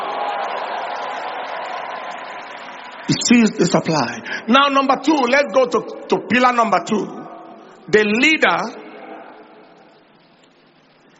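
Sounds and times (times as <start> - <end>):
audience clapping: 0.0 - 3.1
speech: 3.1 - 7.2, 7.9 - 8.8.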